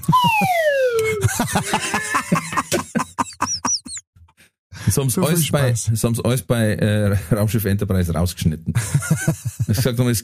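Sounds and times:
harmonic whine from an aircraft: 0.0 - 1.2
laughter: 0.0 - 4.0, 8.8 - 9.9
speech: 1.4 - 1.9, 5.0 - 10.2.

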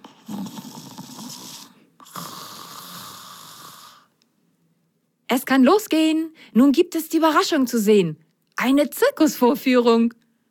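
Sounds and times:
soft snoring: 0.0 - 4.2
speech: 5.3 - 10.2.

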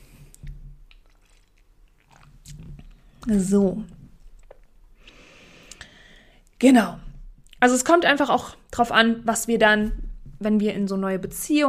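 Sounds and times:
wet mouth noises taking a sip of a drink: 0.1 - 5.0
speech: 3.2 - 4.0, 6.6 - 7.0, 7.6 - 11.6.

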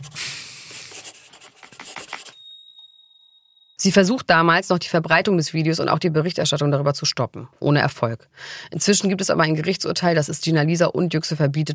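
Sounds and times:
pen scratching out a note: 0.0 - 2.4
speech: 3.8 - 11.7.

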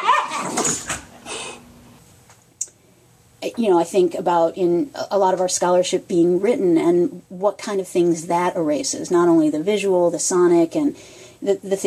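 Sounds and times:
dogs playing or fighting: 0.0 - 1.2
speech: 0.6 - 0.9, 3.4 - 11.8.

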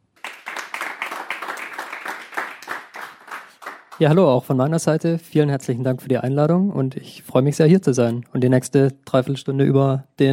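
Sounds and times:
audience applause: 0.2 - 4.2
speech: 4.0 - 10.3.

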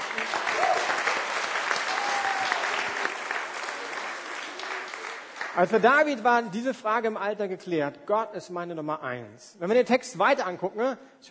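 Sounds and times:
audience clapping: 0.0 - 6.2
speech: 5.6 - 11.2.

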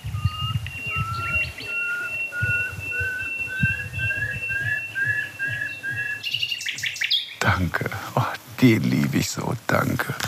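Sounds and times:
nightingale singing near dead oak trees: 0.0 - 7.7
speech: 8.6 - 10.2.

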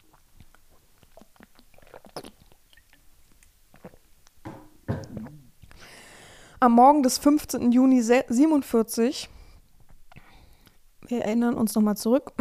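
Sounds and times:
sipping water: 0.0 - 6.2
speech: 6.6 - 9.4, 11.1 - 12.3.

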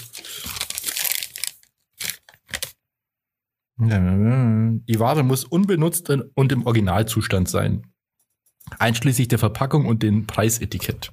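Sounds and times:
paper receipt crinkling: 0.0 - 2.8
speech: 3.8 - 7.9, 8.7 - 11.1.

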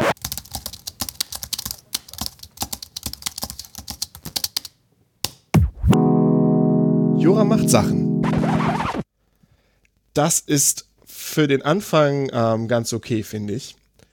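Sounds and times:
hard rapid typing on a computer keyboard: 0.2 - 4.8
short sustained electronic tone: 5.6 - 9.0
speech: 7.2 - 8.1, 10.2 - 13.8.

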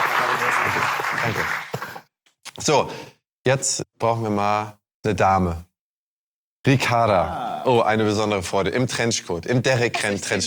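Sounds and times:
audience applause: 0.0 - 2.1
speech: 1.2 - 1.6, 2.6 - 5.7, 6.6 - 10.4.

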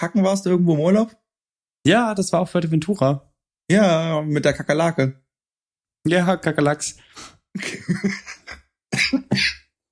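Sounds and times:
speech: 0.0 - 1.2, 1.8 - 5.2, 6.0 - 8.4, 9.0 - 9.6
laughter: 7.6 - 8.7
smoker's cough: 8.9 - 9.7.

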